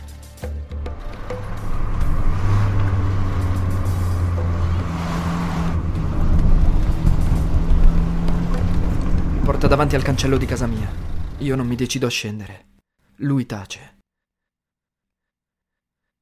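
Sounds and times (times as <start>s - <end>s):
car engine shifting gear and accelerating away: 0.8s - 12.0s
speech: 9.8s - 14.0s.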